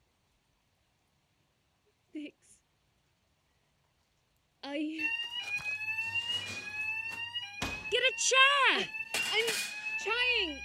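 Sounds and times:
smoke alarm blaring: 4.9s - 10.6s
speech: 8.1s - 10.6s.

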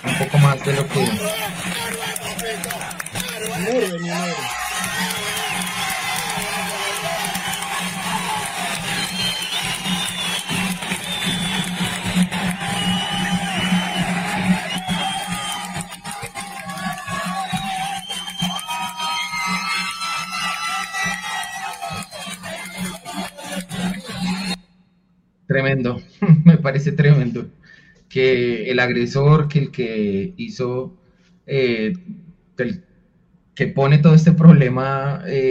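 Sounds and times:
laughter: 0.0s - 19.0s, 21.4s - 24.5s
stadium crowd applauding: 0.0s - 24.6s
speech: 0.1s - 2.0s, 26.8s - 32.9s, 33.6s - 35.4s.

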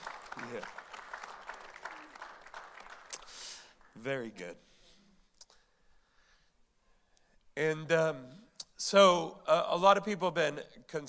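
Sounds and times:
audience applause: 0.0s - 4.0s
speech: 0.5s - 0.9s, 4.0s - 4.7s, 7.6s - 11.0s.

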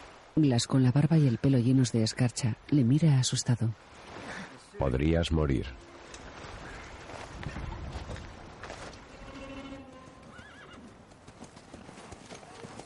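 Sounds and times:
speech: 0.4s - 4.2s, 4.8s - 5.9s
hooves of two ridden horses clip-clopping: 5.8s - 12.8s
horse whinnying: 9.1s - 10.9s.

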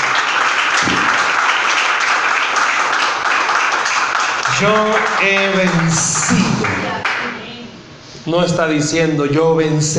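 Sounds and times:
audience applause: 0.0s - 7.2s
speech: 4.6s - 7.0s, 8.3s - 9.9s.

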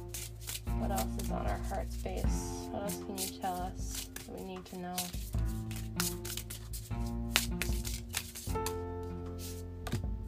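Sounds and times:
tarot cards being shuffled and drawn: 0.0s - 10.1s
speech: 1.0s - 6.2s.

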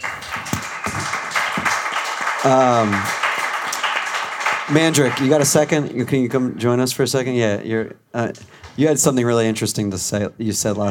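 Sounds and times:
round of applause: 0.0s - 5.8s
speech: 2.4s - 3.2s, 4.7s - 10.8s.

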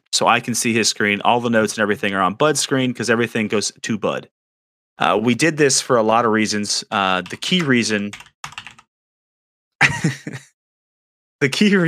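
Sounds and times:
speech: 0.1s - 4.4s, 5.0s - 8.6s, 10.0s - 10.5s, 11.4s - 11.8s
typing a message on a computer keyboard: 7.2s - 8.9s
laughter: 9.8s - 10.5s.

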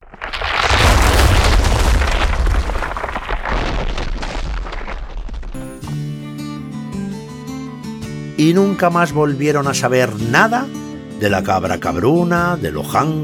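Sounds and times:
hayloft collapsing crash: 0.0s - 5.8s
debris crackling: 0.0s - 5.9s
speech: 8.4s - 13.2s.

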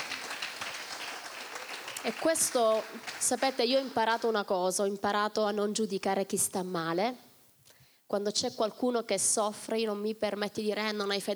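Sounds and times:
audience applause: 0.0s - 4.3s
speech: 2.0s - 7.3s, 8.1s - 11.3s.

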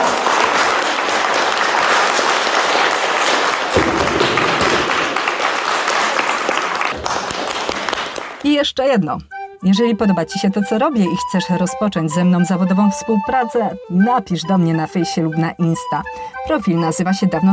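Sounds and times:
audience applause: 0.0s - 8.4s
speech: 8.6s - 17.5s.

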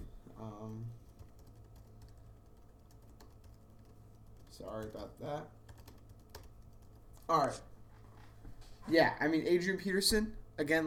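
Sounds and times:
faint keyboard typing: 0.6s - 7.2s
speech: 4.6s - 5.6s, 7.3s - 7.7s, 8.9s - 10.8s.

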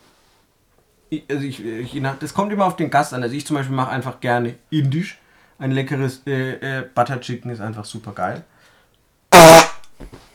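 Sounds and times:
speech: 1.1s - 8.5s
fart-like noise blown into hand: 9.3s - 9.9s.

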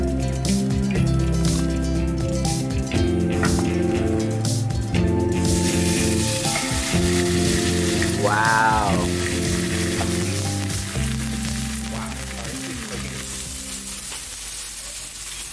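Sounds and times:
steak frying in Zero Acres cultured vegetable oil over high heat: 0.0s - 15.5s.

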